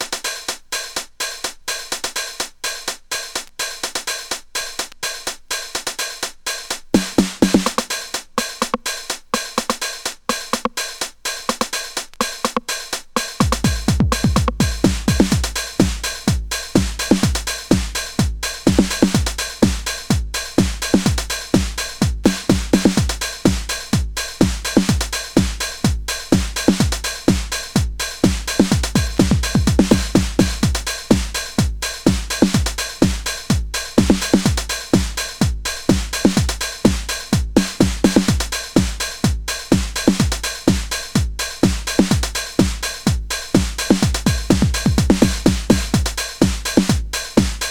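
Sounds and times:
clapping beat: 0.0 - 25.8, 26.4 - 47.6.

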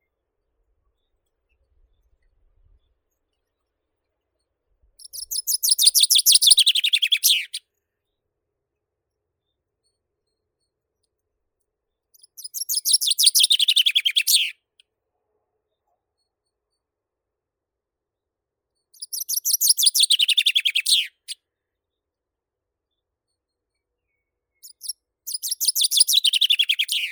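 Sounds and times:
common chaffinch Fringilla coelebs singing: 5.0 - 7.6, 12.2 - 14.5, 19.0 - 21.4, 24.6 - 27.1.

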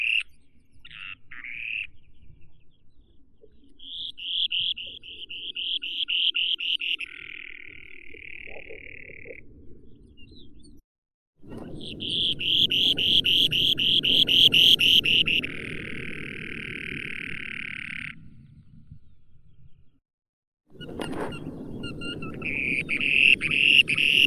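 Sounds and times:
spoon-billed sandpiper Eurynorhynchus pygmaeus calling: 0.0 - 2.0, 3.7 - 9.4, 11.5 - 18.2, 20.7 - 24.2.

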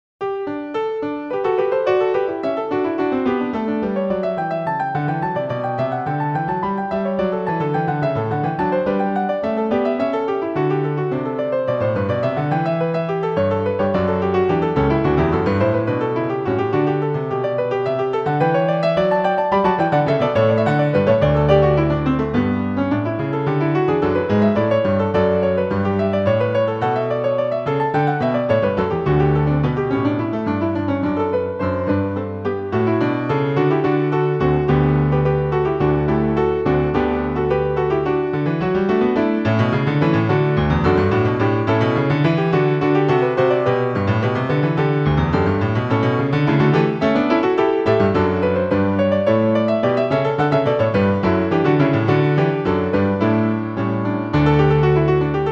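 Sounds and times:
allegro instrumental music: 0.7 - 55.5.

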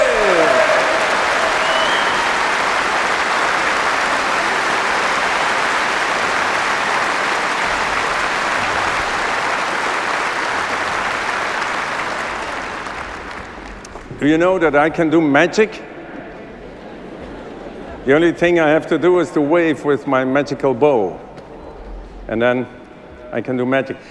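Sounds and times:
audience applauding for a ballet company: 0.0 - 14.8
speech: 14.2 - 15.9, 18.1 - 21.3, 22.3 - 24.1.

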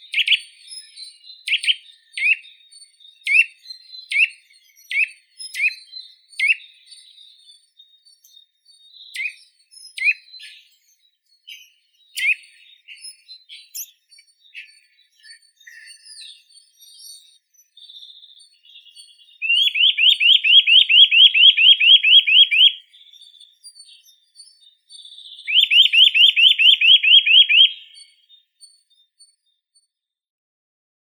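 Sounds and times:
Eurasian nuthatch Sitta europaea calling: 0.0 - 7.2, 11.5 - 28.8.

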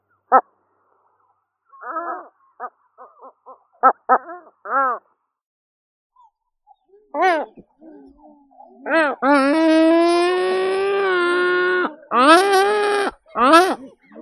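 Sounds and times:
great black-headed gull Larus ichthyaetus calling: 0.3 - 0.5, 1.8 - 5.1, 8.8 - 14.2.

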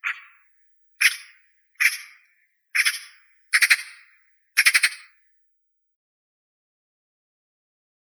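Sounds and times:
Eurasian magpie Pica pica calling: 0.0 - 0.4, 1.0 - 5.1.

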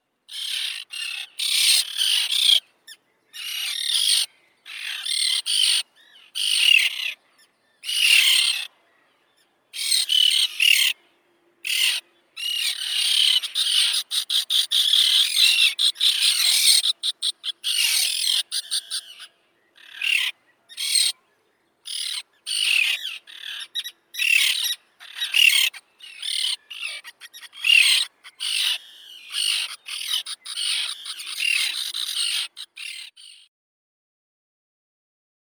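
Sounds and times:
common tern Sterna hirundo calling: 0.3 - 2.7, 3.4 - 7.2, 7.8 - 8.7, 9.8 - 11.0, 11.6 - 21.2, 21.9 - 33.5.

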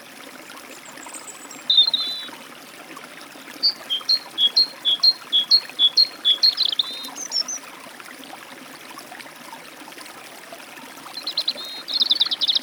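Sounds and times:
forest stream flowing: 0.0 - 12.6
European robin at a forest stream: 1.1 - 2.3, 3.6 - 7.6, 11.2 - 12.6
great tit at a forest stream: 1.2 - 2.3, 3.6 - 7.6, 11.2 - 12.6.

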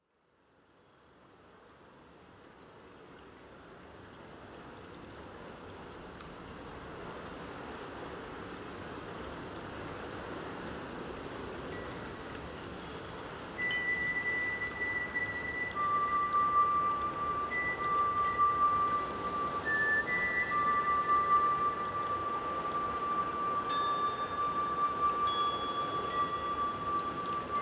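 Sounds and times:
crickets chirping: 11.7 - 27.6.

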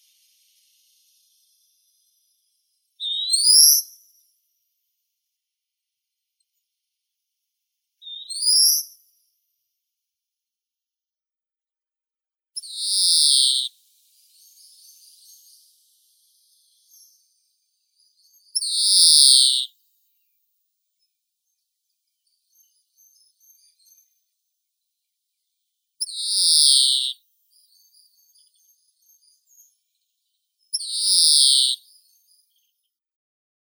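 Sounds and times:
European greenfinch Chloris chloris singing: 3.0 - 3.8, 8.0 - 8.8, 12.6 - 13.7, 18.3 - 19.7, 26.0 - 27.1, 30.8 - 32.7.

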